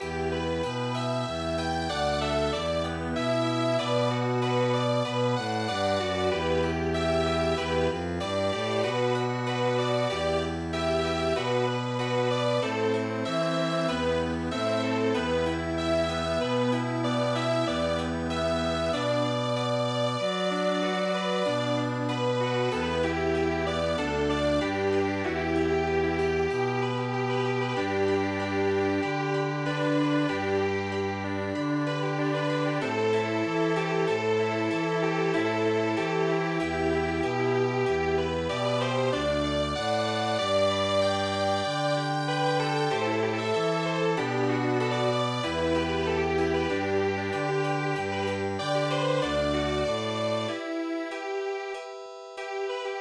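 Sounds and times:
chamber music: 0.0s - 52.9s.

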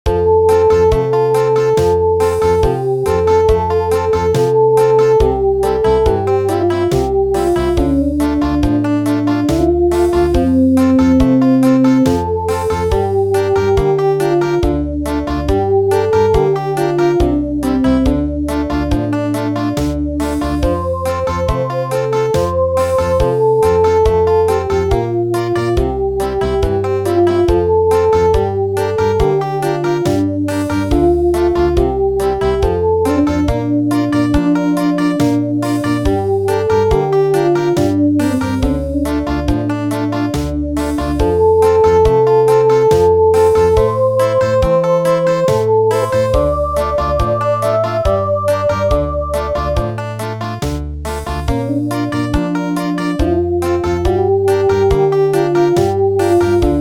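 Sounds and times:
country music: 0.1s - 56.7s.

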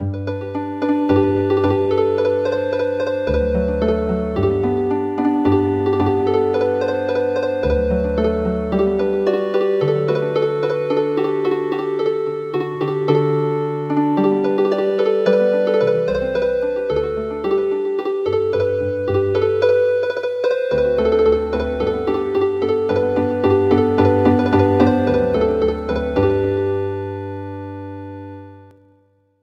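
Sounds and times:
harp: 0.0s - 28.8s.

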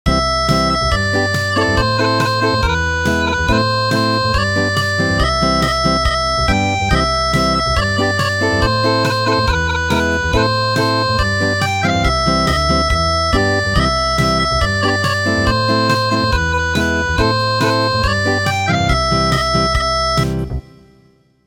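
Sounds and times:
acoustic music: 0.1s - 21.0s.

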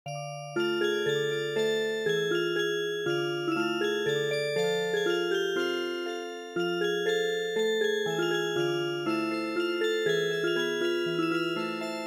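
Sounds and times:
music box: 0.1s - 12.0s.

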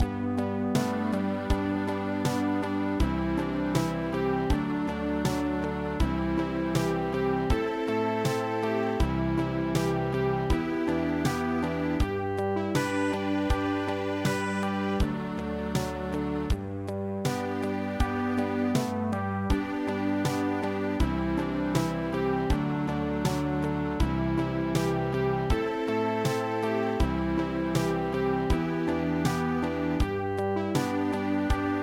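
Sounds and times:
ballade music: 0.0s - 31.8s.

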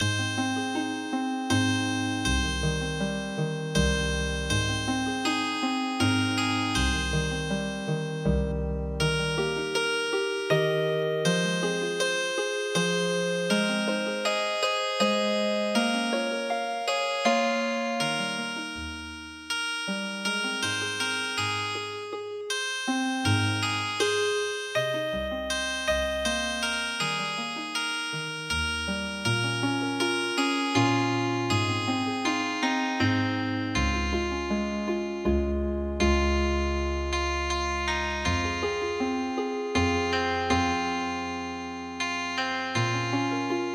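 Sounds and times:
healing harp music: 0.0s - 43.7s.

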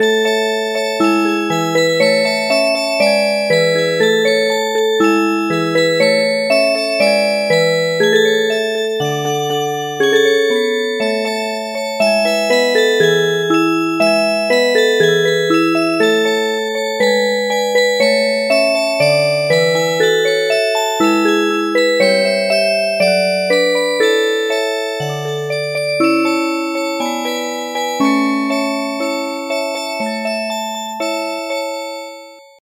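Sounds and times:
music box: 0.0s - 32.6s.

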